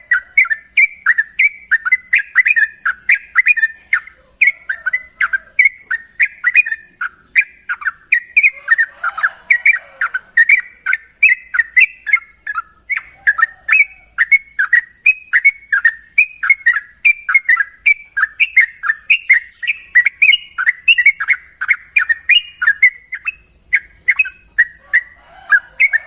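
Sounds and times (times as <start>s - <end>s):
Yellow-vented Bulbul chattering long-trill song: 0.0s - 26.0s.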